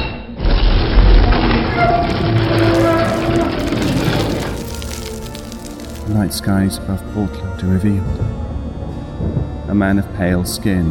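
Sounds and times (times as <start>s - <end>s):
ceiling collapsing with concrete debris raining down: 0.4s - 6.3s
speech: 6.2s - 8.4s, 9.3s - 10.9s.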